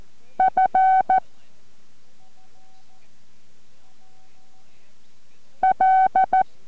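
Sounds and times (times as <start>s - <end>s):
Morse code tones being sent: 0.4s - 1.2s, 5.6s - 6.4s.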